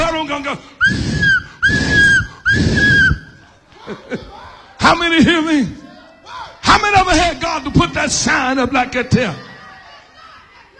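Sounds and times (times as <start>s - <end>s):
speech: 0.4s - 1.1s, 3.9s - 4.3s, 4.9s - 5.8s, 6.7s - 9.5s
preacher whistling to call someone: 0.8s - 3.4s
laughter: 2.0s - 4.9s, 8.6s - 10.7s.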